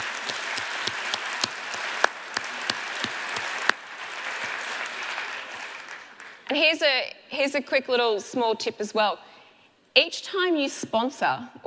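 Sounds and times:
audience applause: 0:00.0 - 0:06.5
speech: 0:06.6 - 0:09.3, 0:10.0 - 0:11.6.

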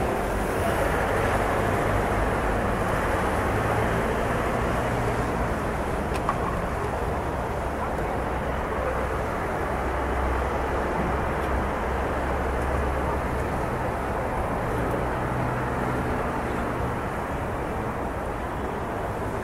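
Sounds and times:
traffic rumble in a city at night in France: 0:00.0 - 0:19.4.

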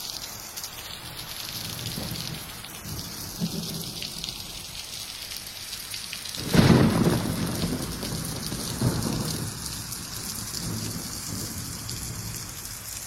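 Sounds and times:
light rain hissing: 0:00.0 - 0:13.0
low thunder rumbling: 0:01.5 - 0:04.7, 0:06.4 - 0:13.0.

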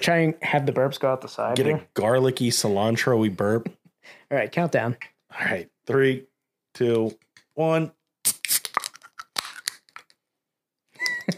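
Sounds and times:
speech: 0:00.0 - 0:08.0
beer can being cracked open: 0:08.2 - 0:10.1.

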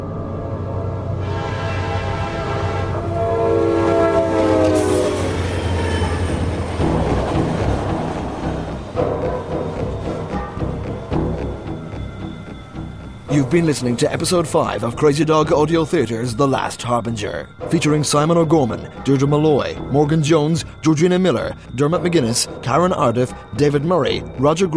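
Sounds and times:
train rumbling along tracks: 0:00.2 - 0:24.7
long multi-toned train horn blasts: 0:00.8 - 0:09.1
speech: 0:13.5 - 0:24.7.

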